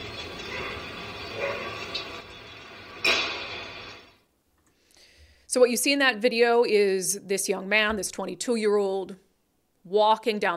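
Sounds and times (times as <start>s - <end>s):
dog barking: 0.5s - 1.8s
gunshot: 3.0s - 3.6s
speech: 5.5s - 9.2s, 9.8s - 10.5s.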